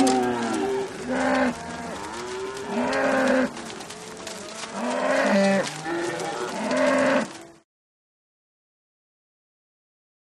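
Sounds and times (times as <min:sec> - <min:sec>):
cow mooing: 0:00.0 - 0:07.6.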